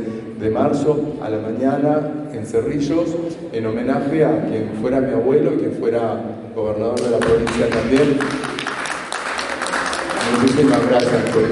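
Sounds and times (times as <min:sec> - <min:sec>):
speech: 0:00.4 - 0:08.4, 0:10.3 - 0:11.4
audience applause: 0:07.2 - 0:11.4.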